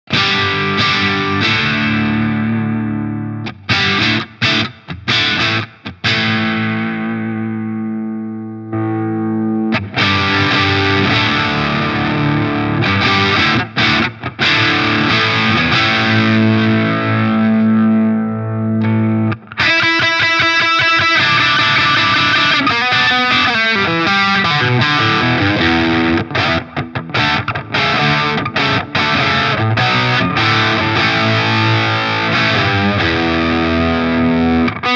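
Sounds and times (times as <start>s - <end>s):
electric guitar with light overdrive pedal into a slightly overdriven amp: 0.0s - 34.9s.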